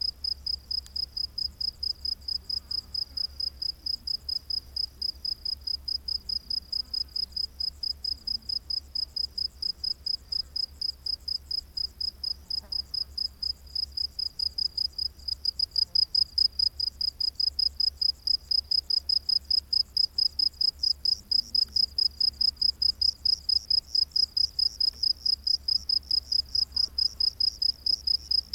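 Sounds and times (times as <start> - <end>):
cricket chirping: 0.0 - 28.5.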